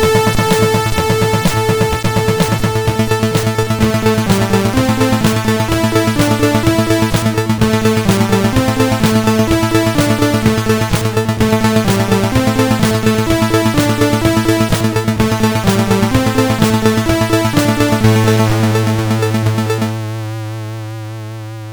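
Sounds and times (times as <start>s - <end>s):
CSG8580R5 SID chip music: 0.0s - 20.6s.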